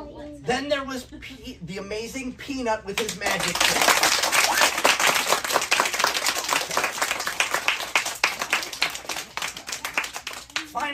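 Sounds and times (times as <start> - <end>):
speech: 0.5 - 4.3
small scattered applause: 3.2 - 10.9.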